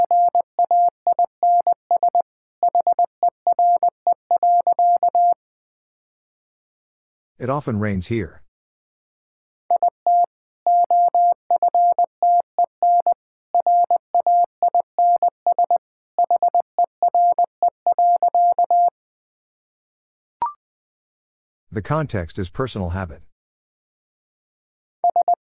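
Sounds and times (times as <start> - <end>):
Morse code tones at 20 wpm: 0.0 - 5.4, 9.7 - 18.9, 25.0 - 25.4
speech: 7.4 - 8.4, 21.8 - 23.3.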